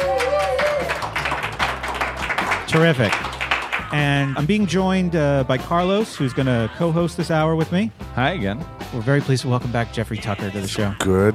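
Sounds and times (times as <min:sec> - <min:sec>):
live audience clapping at the Liberty Forum: 0:00.0 - 0:04.4
speech: 0:02.7 - 0:03.3, 0:03.9 - 0:11.3.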